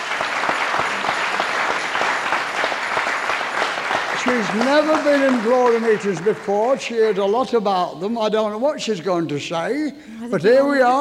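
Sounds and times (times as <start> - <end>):
audience applause: 0.0 - 7.4
speech: 4.3 - 10.9.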